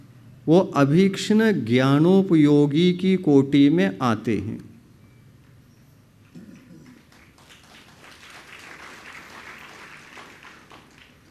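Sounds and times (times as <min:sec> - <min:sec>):
speech: 0:00.5 - 0:04.7
audience clapping: 0:06.3 - 0:11.2.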